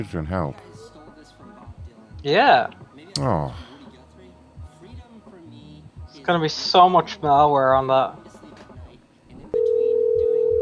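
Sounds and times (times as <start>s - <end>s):
speech: 0.0s - 0.9s, 2.2s - 3.7s, 6.3s - 8.2s
telephone dial tone: 9.6s - 10.6s.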